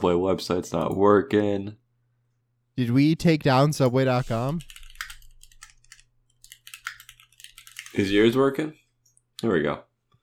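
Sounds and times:
speech: 0:00.0 - 0:01.8, 0:02.8 - 0:04.8, 0:08.0 - 0:08.8, 0:09.4 - 0:09.9
typing on a computer keyboard: 0:04.2 - 0:08.2.

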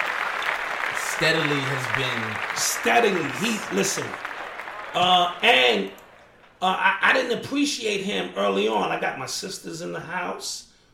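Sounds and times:
clapping applause: 0:00.0 - 0:06.2
speech: 0:01.2 - 0:04.3, 0:04.9 - 0:06.0, 0:06.6 - 0:10.7.

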